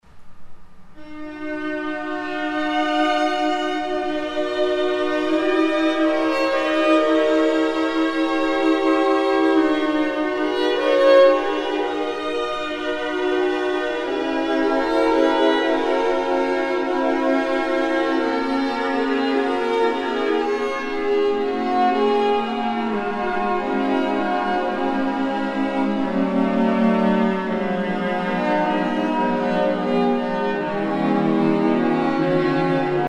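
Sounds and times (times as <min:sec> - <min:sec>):
classical string music: 0:00.9 - 0:33.0.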